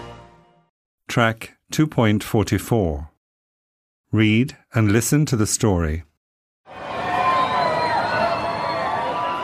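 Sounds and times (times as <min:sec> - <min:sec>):
speech: 0:01.1 - 0:03.1, 0:04.1 - 0:06.1
crowd shouting and cheering at a parade: 0:06.7 - 0:09.4.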